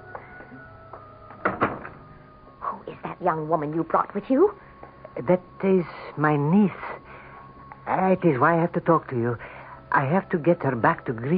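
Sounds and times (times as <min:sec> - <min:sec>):
door opening: 0:00.2 - 0:02.3
speech: 0:03.2 - 0:06.9, 0:07.9 - 0:11.3.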